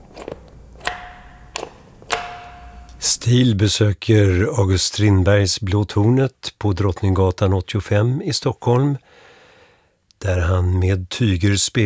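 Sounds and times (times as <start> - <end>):
doorbell ringing: 0.8 - 3.1
speech: 3.0 - 9.2, 10.2 - 11.8.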